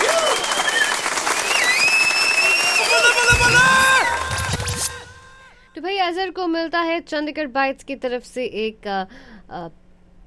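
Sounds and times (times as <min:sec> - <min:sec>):
applause: 0:00.0 - 0:05.4
speech: 0:06.3 - 0:09.8.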